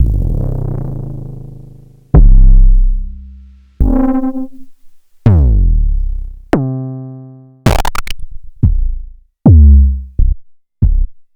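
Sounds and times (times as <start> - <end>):
kick drum in C: 2.2 - 6.7, 7.7 - 11.3.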